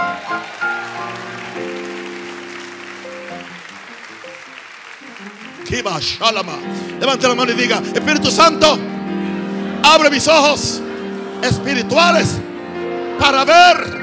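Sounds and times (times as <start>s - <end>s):
audience applause: 0.0s - 8.0s
speech: 5.7s - 8.9s, 9.8s - 10.8s, 11.4s - 12.4s, 13.2s - 13.9s.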